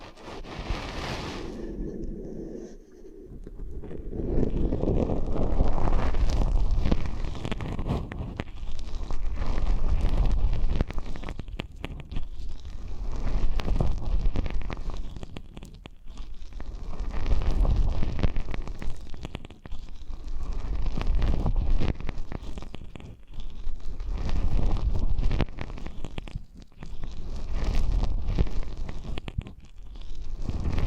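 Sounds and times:
muffled rumbling rubbing against the microphone: 0:00.0 - 0:30.8.

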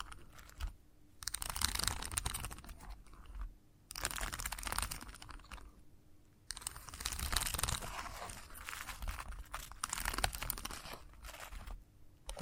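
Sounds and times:
faint steady hum: 0:00.0 - 0:12.4
chalk scratching and tapping a hard surface: 0:07.6 - 0:09.0.

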